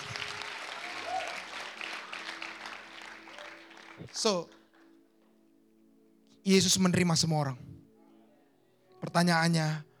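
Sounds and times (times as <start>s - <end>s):
audience applause: 0.0s - 4.2s
speech: 4.0s - 4.6s, 6.4s - 7.7s, 9.0s - 9.9s.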